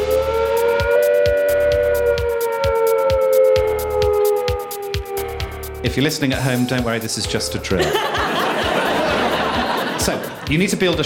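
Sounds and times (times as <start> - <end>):
four-minute warning siren: 0.0 - 5.9
speech: 5.9 - 8.1, 10.1 - 11.0
laughter: 7.6 - 11.0.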